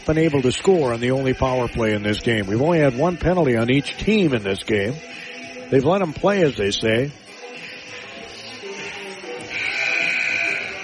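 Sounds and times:
speech: 0.1 - 7.6
hockey arena buzzer blast: 9.4 - 10.8.

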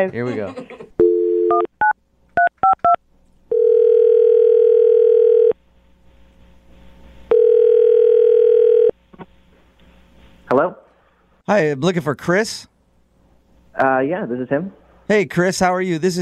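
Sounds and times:
speech: 0.0 - 1.7, 11.5 - 12.7, 13.8 - 16.2
telephone ringing: 3.5 - 5.6, 7.3 - 8.9.

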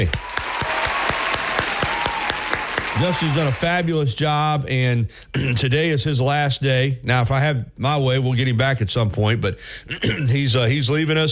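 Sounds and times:
canned applause sound effect from applause meter: 0.0 - 3.9
speech: 3.0 - 11.2.

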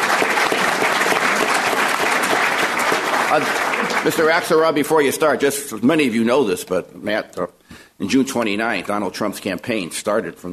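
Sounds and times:
audience applause: 0.0 - 4.9
speech: 3.3 - 10.5.

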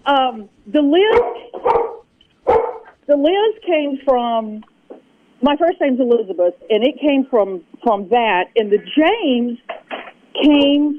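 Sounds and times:
speech: 0.1 - 1.4, 3.1 - 4.7, 5.4 - 9.8, 10.4 - 10.9
puppy barking: 1.1 - 2.9.

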